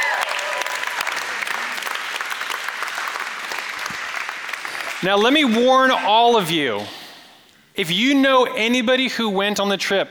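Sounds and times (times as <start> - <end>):
audience applause: 0.0 - 6.4
speech: 5.0 - 7.0, 7.8 - 10.0.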